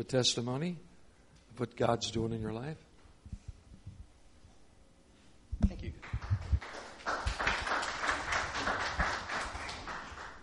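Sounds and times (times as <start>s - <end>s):
speech: 0.0s - 0.9s, 1.6s - 2.9s
audience clapping: 5.8s - 10.4s.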